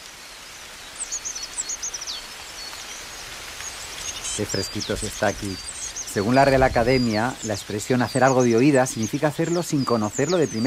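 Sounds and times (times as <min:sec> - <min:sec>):
coal tit singing in winter: 0:03.6 - 0:10.6
speech: 0:04.4 - 0:10.6.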